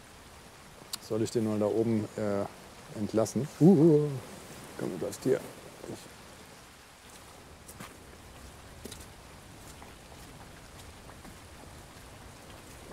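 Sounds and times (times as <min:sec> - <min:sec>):
rain falling: 0:00.0 - 0:12.9
speech: 0:01.1 - 0:06.2.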